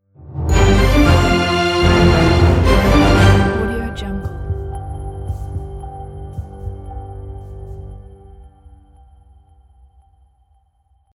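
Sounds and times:
powerful breaking news orchestral logo music: 0.2 - 5.2.

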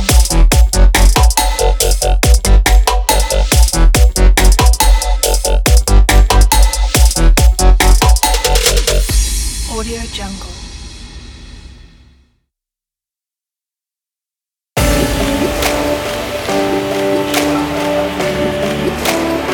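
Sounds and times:
future bass music: 0.0 - 9.2, 14.8 - 19.5.

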